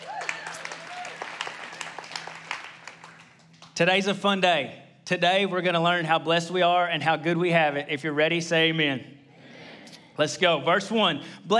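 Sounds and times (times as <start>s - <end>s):
audience applause at a church service: 0.0s - 3.7s
speech: 3.8s - 9.2s, 10.2s - 11.5s.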